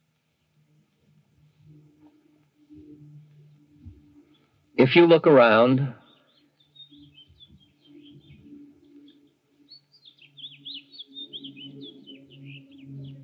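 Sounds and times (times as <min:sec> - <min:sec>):
birds chirping and tweeting outdoors: 0:04.4 - 0:13.2
speech: 0:04.8 - 0:06.0.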